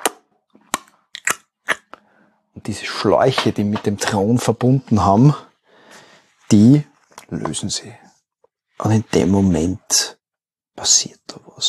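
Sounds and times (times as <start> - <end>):
voice imitating a wet smacking noise: 0.0 - 2.0
speech: 2.6 - 5.5, 6.5 - 8.1, 8.8 - 10.2, 10.8 - 11.6.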